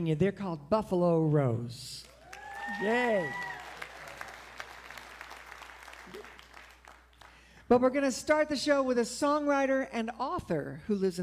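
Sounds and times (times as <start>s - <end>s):
speech: 0.0s - 2.1s, 2.7s - 3.5s, 7.7s - 11.2s
audience clapping at a live music show: 2.0s - 7.6s.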